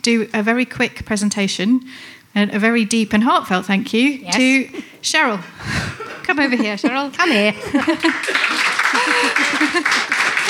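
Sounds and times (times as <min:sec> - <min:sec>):
speech: 0:00.0 - 0:10.2
laughter: 0:05.8 - 0:10.4
audience applause: 0:07.7 - 0:10.4.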